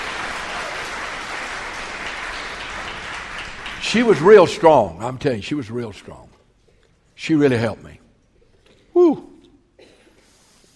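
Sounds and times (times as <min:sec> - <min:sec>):
people clapping: 0:00.0 - 0:04.8
speech: 0:03.8 - 0:06.4, 0:07.2 - 0:08.0, 0:09.0 - 0:09.3.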